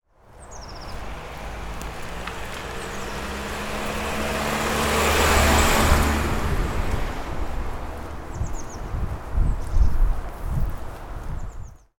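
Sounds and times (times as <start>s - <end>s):
wind: 0.0s - 11.9s
car: 0.4s - 8.6s.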